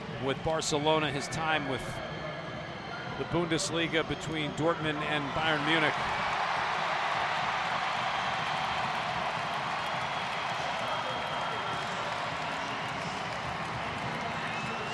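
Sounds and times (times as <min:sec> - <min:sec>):
speech: 0:00.2 - 0:02.2, 0:03.2 - 0:06.3
big round of applause: 0:05.4 - 0:14.9.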